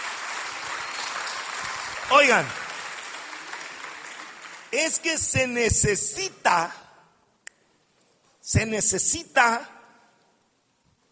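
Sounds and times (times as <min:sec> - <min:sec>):
audience applause: 0:00.0 - 0:05.0
speech: 0:02.1 - 0:02.6, 0:04.7 - 0:06.8, 0:08.5 - 0:09.8.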